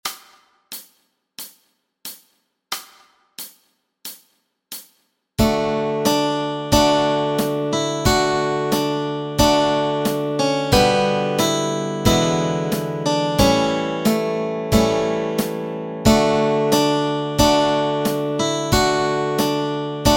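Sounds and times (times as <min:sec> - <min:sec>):
guitar and ukulele playing melody and chords: 0:05.4 - 0:20.1.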